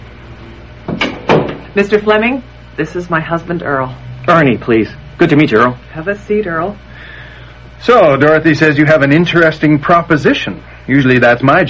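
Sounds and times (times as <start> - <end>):
door shutting: 0.8 - 1.7
speech: 1.8 - 7.1, 7.8 - 11.6.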